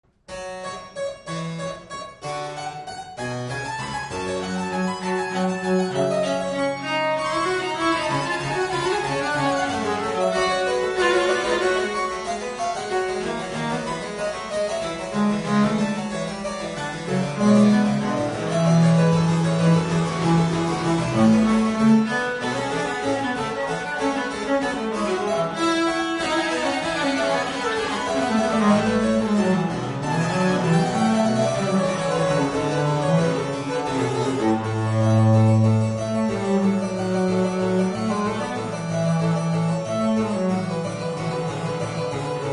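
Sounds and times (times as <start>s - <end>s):
allegro classical piece: 0.1s - 42.5s.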